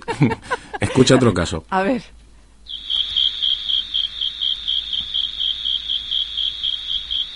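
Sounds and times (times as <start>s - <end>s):
laughter: 0.0s - 1.4s
speech: 0.2s - 2.2s
insect chirping: 2.6s - 7.3s.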